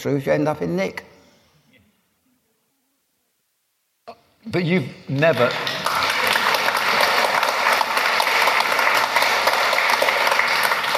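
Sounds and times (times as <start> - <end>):
speech: 0.0 - 1.1, 4.4 - 5.7
crowd applause: 5.2 - 10.9.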